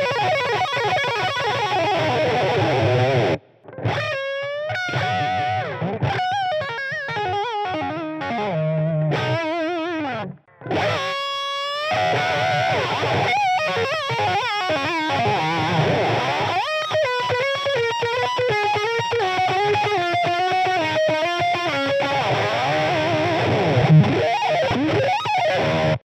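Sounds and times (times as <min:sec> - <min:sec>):
electric guitar through Rocktron Third Angel Distortion pedal: 0:00.0 - 0:26.0.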